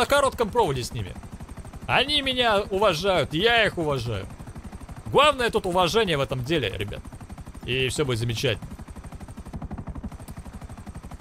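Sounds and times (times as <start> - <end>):
speech: 0.0 - 1.3, 1.9 - 4.4, 5.1 - 7.1, 7.7 - 8.7
video game helicopter rotor chop: 0.0 - 11.1.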